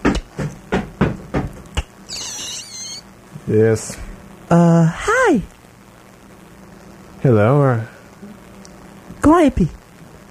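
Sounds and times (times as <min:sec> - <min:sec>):
knocking on a door: 0:00.0 - 0:01.7
high wavering squeal: 0:02.1 - 0:03.1
speech: 0:03.5 - 0:05.6, 0:07.2 - 0:07.9, 0:09.3 - 0:09.8.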